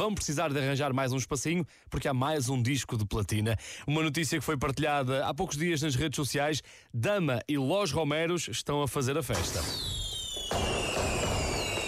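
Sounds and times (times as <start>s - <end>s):
speech: 0.0s - 10.0s
fireworks exploding: 9.4s - 11.8s.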